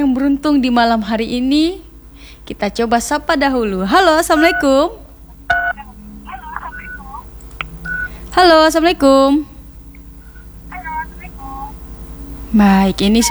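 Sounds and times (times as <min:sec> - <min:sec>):
speech: 0:00.0 - 0:01.8, 0:02.5 - 0:05.0, 0:08.4 - 0:09.5, 0:12.5 - 0:13.2
faint talk: 0:03.6 - 0:08.7, 0:10.3 - 0:11.8
telephone keypad dialing beeps: 0:04.4 - 0:04.8, 0:05.5 - 0:08.2, 0:10.3 - 0:11.8.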